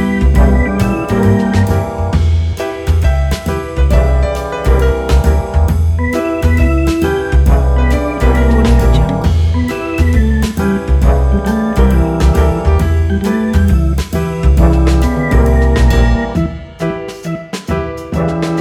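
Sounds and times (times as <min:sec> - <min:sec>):
midnight detective jazz piano: 0:00.0 - 0:18.6.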